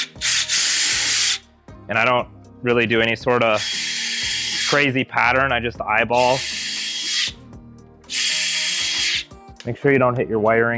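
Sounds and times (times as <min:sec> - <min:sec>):
power drill drilling holes in sled glove box: 0:00.0 - 0:01.4, 0:03.6 - 0:04.8, 0:06.2 - 0:07.3, 0:08.1 - 0:09.2
speech: 0:01.9 - 0:03.8, 0:04.7 - 0:06.6, 0:09.6 - 0:10.7.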